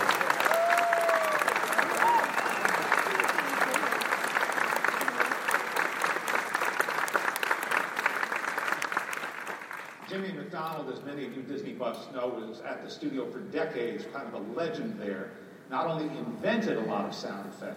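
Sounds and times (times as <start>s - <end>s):
audience applause: 0.0s - 10.1s
speech: 10.8s - 17.7s.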